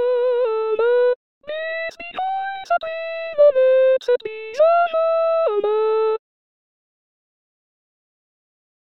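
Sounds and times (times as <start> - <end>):
soprano singing: 0.0 - 6.2.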